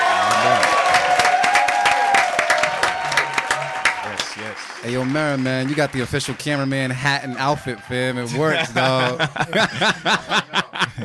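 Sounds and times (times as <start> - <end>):
crowd clapping: 0.0 - 8.5
speech: 4.8 - 11.0
laughter: 7.2 - 11.0.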